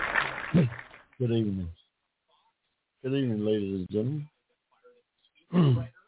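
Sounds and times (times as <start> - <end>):
throat clearing: 0.5 - 0.8, 5.5 - 6.0
speech: 1.3 - 1.8, 3.0 - 4.3, 5.5 - 5.9.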